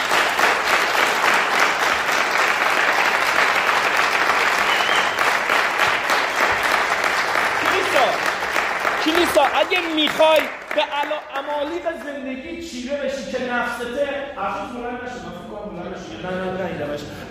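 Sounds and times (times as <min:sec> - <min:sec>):
audience applause: 0:00.0 - 0:12.2
speech: 0:09.4 - 0:17.2.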